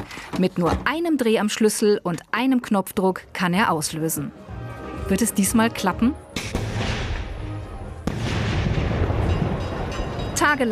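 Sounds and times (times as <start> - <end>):
speech: 0.0 - 4.5, 5.1 - 6.6, 10.5 - 10.7
fireworks barrage booming and crackling: 8.0 - 9.9.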